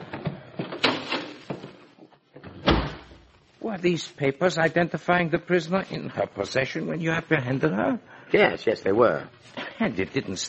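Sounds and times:
door thudding shut: 2.6s - 3.2s
speech: 3.7s - 10.4s.

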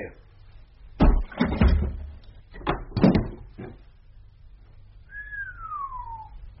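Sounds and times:
locked door being forced and broken open: 1.0s - 3.8s.

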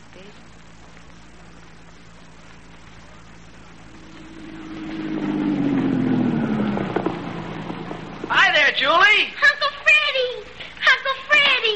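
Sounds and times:
car engine driving toward a farmhouse: 2.2s - 10.2s.

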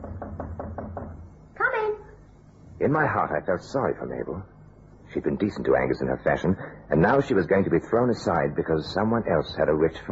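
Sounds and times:
knocking on an apartment door: 0.0s - 1.3s
speech: 2.8s - 4.5s, 5.1s - 10.1s.

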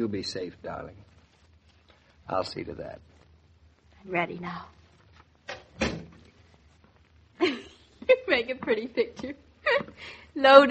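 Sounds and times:
speech: 0.0s - 1.1s, 2.3s - 3.1s, 4.0s - 4.8s, 7.4s - 10.7s
door being shut: 5.5s - 6.2s.

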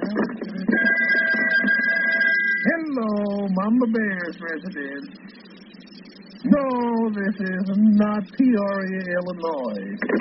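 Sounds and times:
telephone ringing: 0.7s - 2.8s
speech: 3.1s - 5.4s, 6.4s - 10.1s.

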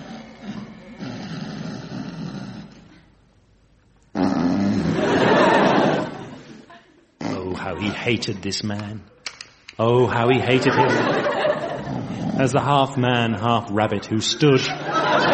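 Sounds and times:
uneasy snoring: 0.0s - 3.1s, 4.1s - 5.2s, 11.8s - 12.5s
laughter: 4.8s - 8.0s, 10.3s - 12.3s, 14.3s - 15.3s
speech: 7.8s - 9.2s, 9.8s - 11.4s, 12.4s - 15.0s.

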